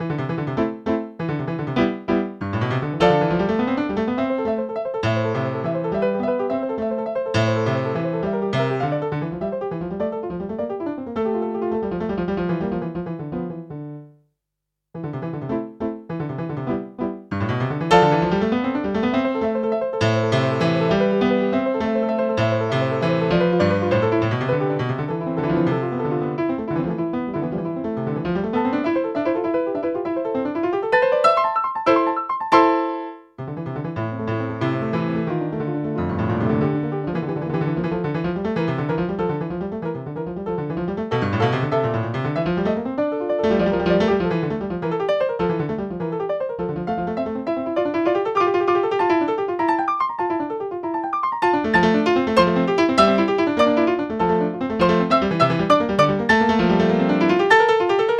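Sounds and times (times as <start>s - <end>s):
minuet: 0.0s - 14.2s, 15.0s - 58.1s.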